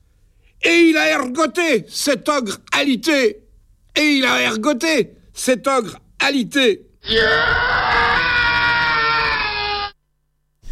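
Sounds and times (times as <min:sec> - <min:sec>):
speech: 0:00.6 - 0:03.4, 0:04.0 - 0:07.8
man screaming: 0:07.0 - 0:10.0.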